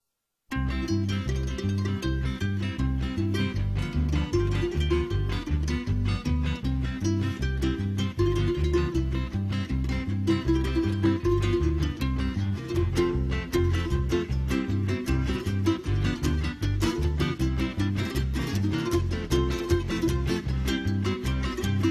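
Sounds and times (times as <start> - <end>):
march music: 0.5 - 21.8.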